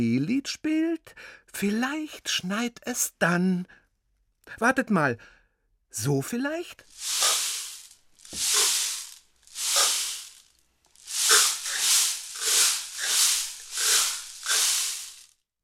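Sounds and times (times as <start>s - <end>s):
speech: 0.0s - 3.8s, 4.5s - 7.3s, 8.3s - 8.6s
homemade rain stick being played: 6.8s - 15.4s.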